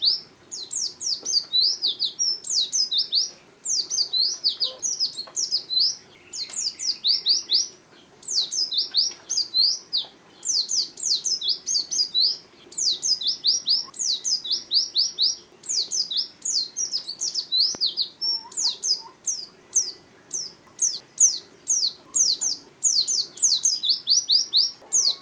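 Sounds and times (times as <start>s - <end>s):
nightingale song for training caged songbirds: 0.0s - 25.1s.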